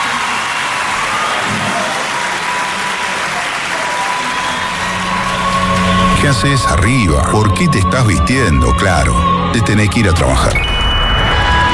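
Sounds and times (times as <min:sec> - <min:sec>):
faint crowd murmur: 0:00.0 - 0:07.5
audience applause: 0:00.0 - 0:08.7
speech: 0:06.3 - 0:10.7.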